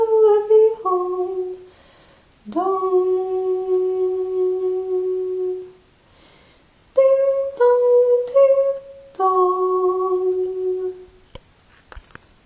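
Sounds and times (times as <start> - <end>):
soprano voice singing: 0.0 - 1.7, 2.4 - 5.8, 6.9 - 11.2.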